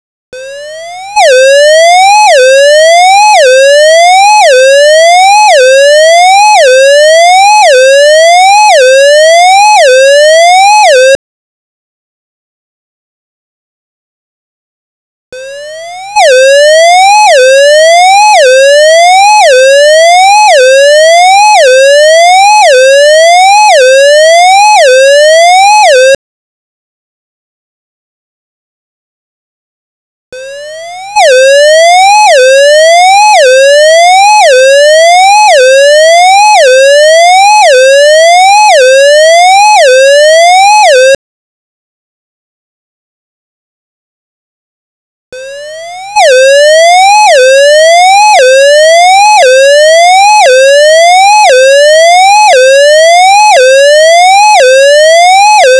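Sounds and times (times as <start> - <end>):
siren: 0.4 - 11.2, 15.4 - 26.2, 30.4 - 41.2, 45.4 - 55.7.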